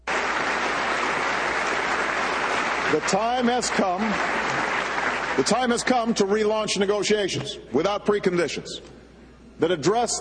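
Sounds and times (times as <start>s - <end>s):
applause at the UN: 0.0s - 6.3s
speech: 2.9s - 4.4s, 5.4s - 9.0s, 9.6s - 10.1s.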